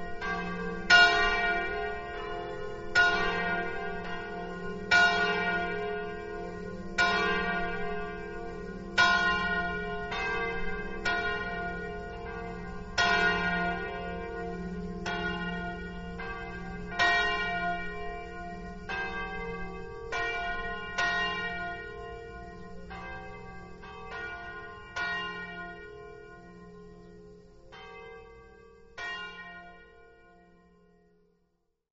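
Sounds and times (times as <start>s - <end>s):
bells ringing: 0.0s - 31.0s.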